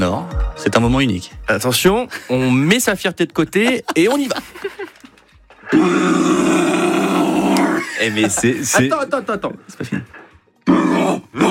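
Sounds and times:
speech: 0.0 - 4.8, 5.7 - 6.7, 8.0 - 11.5
laughter: 3.5 - 5.4, 7.6 - 10.2
person imitating a red deer rutting bellow: 5.7 - 7.8.

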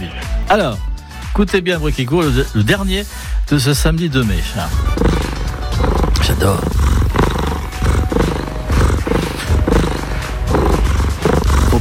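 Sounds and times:
speech: 0.5 - 5.2, 6.3 - 6.8
cat purring: 4.6 - 11.7.

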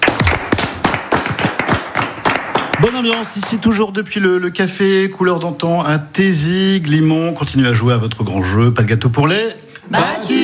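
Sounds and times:
contestants clapping: 0.0 - 3.9
speech: 2.8 - 10.4.

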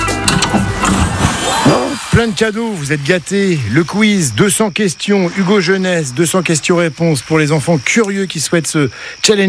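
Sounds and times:
door creaking open with ratcheting clatter: 0.2 - 1.5
speech: 2.2 - 9.4.

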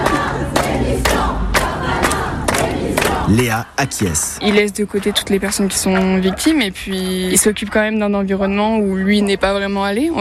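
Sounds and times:
protest crowd chanting: 0.0 - 6.7
speech: 3.3 - 10.2.

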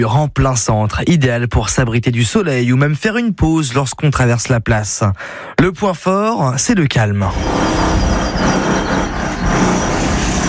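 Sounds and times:
speech: 0.0 - 10.0
jackhammer pounding at roadworks: 7.3 - 10.4.

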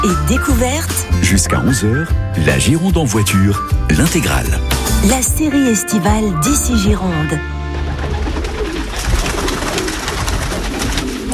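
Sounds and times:
speech: 0.2 - 7.6
pigeon wing flutters and rustling: 7.7 - 11.3
pigeons cooing at a dovecote: 7.7 - 11.3.

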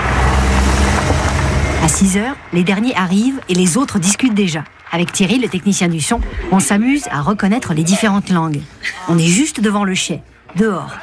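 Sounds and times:
grape pickers' cars arriving at night beside a wine estate: 0.0 - 7.6
road noise: 0.0 - 10.7
speech: 1.8 - 11.0.

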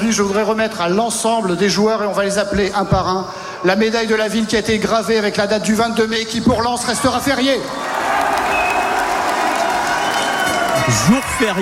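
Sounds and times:
speech: 0.1 - 7.9, 10.9 - 11.6
public in Lens applauding and cheering a surprise holiday announcement: 7.3 - 11.6.

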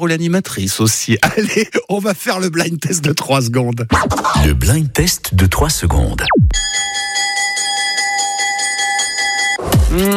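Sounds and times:
speech: 0.0 - 6.7, 10.0 - 10.1
school entrance bell buzzing: 6.6 - 9.6.

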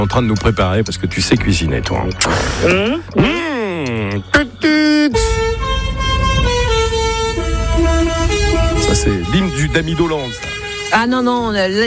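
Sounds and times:
speech: 0.0 - 5.4, 8.9 - 11.8
engine rumbling: 0.0 - 11.8
truck air horn blaring: 5.1 - 11.2.

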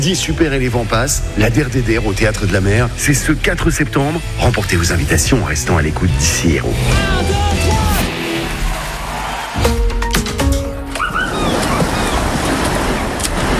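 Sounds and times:
speech: 0.0 - 7.3
ocean waves at a beach: 6.1 - 13.5.

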